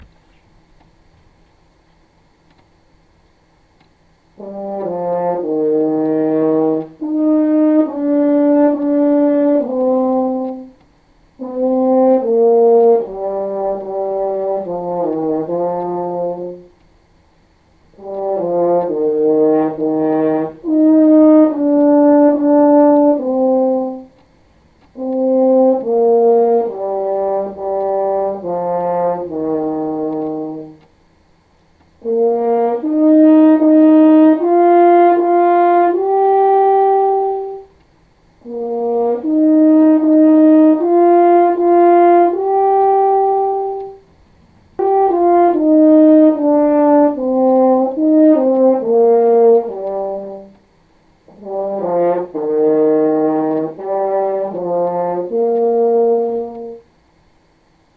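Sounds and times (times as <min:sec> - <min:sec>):
horn: 0:04.3 - 0:57.9.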